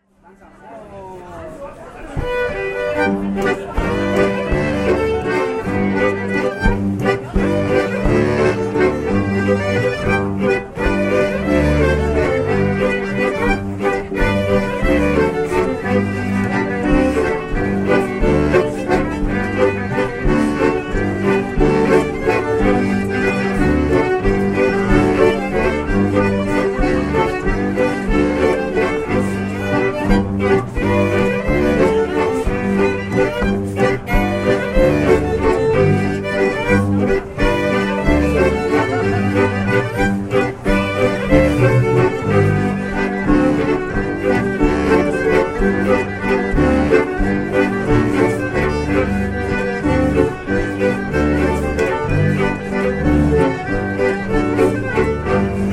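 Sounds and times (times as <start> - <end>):
zwiefacher folk dance music: 0.0 - 55.7.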